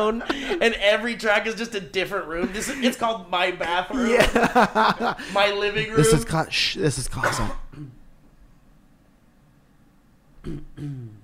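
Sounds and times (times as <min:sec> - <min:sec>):
laughter: 0:00.0 - 0:00.8, 0:02.3 - 0:06.3
speech: 0:00.0 - 0:08.0
person clearing throat: 0:07.2 - 0:08.0, 0:10.4 - 0:11.2.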